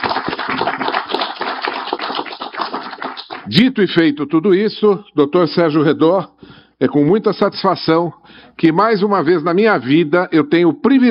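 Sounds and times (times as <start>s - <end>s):
crowd applauding: 0.0s - 3.5s
speech: 3.5s - 11.0s.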